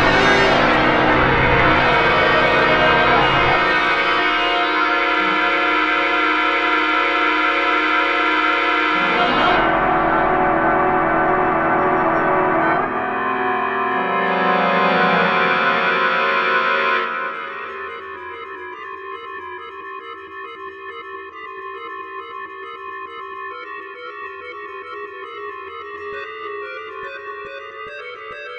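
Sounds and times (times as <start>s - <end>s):
noise: 0.0s - 18.2s.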